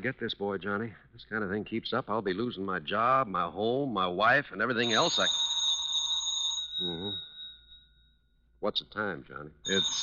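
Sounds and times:
speech: 0.0 - 5.5, 6.8 - 7.3, 8.6 - 10.0
telephone bell ringing: 4.8 - 8.1, 9.7 - 10.0.

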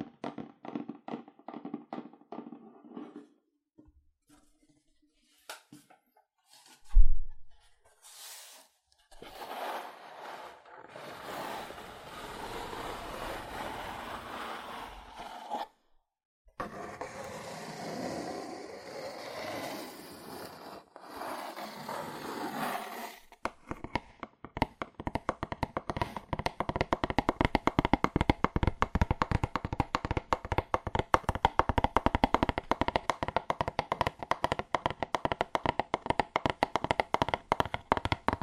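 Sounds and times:
scratchy rubbing: 9.2 - 15.7, 16.6 - 23.3
fast aggressive tapping on cardboard: 23.4 - 38.4.

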